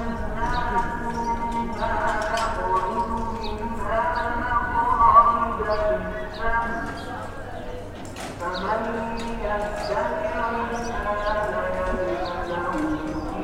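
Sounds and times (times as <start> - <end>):
call to prayer in Jerusalem: 0.0 - 13.4.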